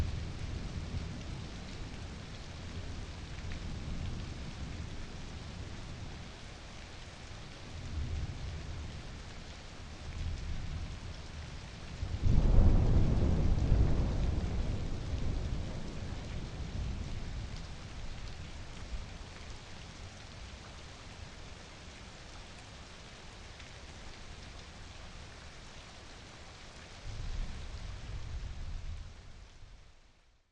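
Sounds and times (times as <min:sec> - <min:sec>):
slowed thunderstorm: 0:00.0 - 0:06.1, 0:10.1 - 0:19.1, 0:27.1 - 0:29.7.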